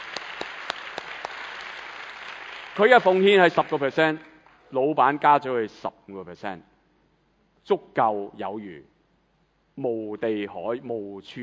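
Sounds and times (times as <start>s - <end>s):
church congregation applauding: 0.0s - 4.7s
speech: 2.8s - 6.7s, 7.6s - 8.9s, 9.8s - 11.4s.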